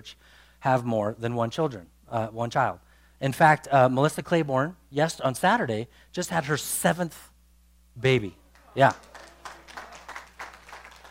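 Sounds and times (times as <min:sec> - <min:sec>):
speech: 0:00.0 - 0:07.3, 0:08.0 - 0:09.1
audience clapping: 0:08.4 - 0:11.1.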